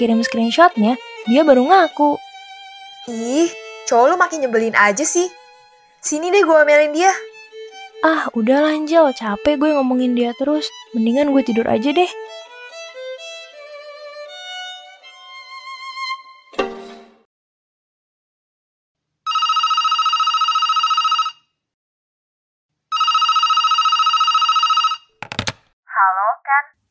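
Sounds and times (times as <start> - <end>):
speech: 0.0 - 2.2, 3.1 - 5.4, 6.0 - 7.3, 8.0 - 12.3
telephone ringing for an incoming call: 19.3 - 21.4, 22.9 - 25.2.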